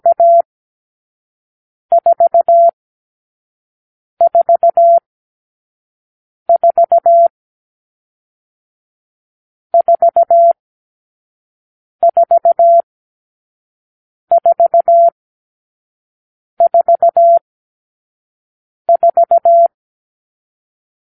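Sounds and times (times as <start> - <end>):
morse code beeps: 0.0 - 0.4, 1.9 - 2.8, 4.2 - 5.0, 6.5 - 7.3, 9.8 - 10.6, 12.0 - 12.8, 14.3 - 15.2, 16.6 - 17.4, 18.9 - 19.8.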